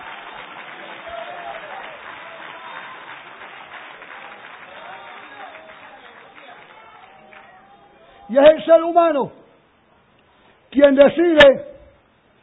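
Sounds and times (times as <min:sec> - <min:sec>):
sustained applause from a large crowd: 0:00.0 - 0:08.2
speech: 0:08.3 - 0:09.4, 0:10.8 - 0:11.7.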